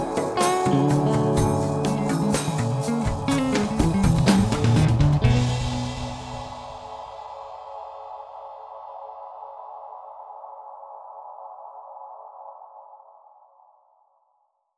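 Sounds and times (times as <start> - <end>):
Stratocaster electric guitar: 0.0 - 6.9.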